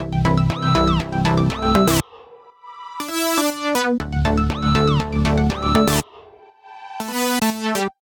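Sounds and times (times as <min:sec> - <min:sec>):
electro music: 0:00.0 - 0:08.0
alarms: 0:00.5 - 0:02.1, 0:04.5 - 0:06.1.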